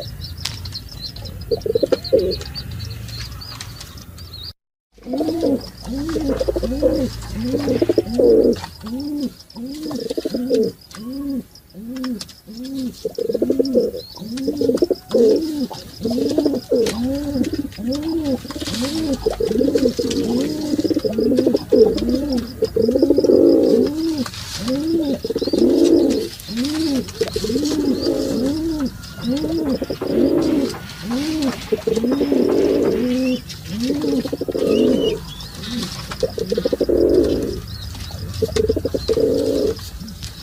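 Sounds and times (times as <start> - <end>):
pigeon calling: 0.0 - 40.4.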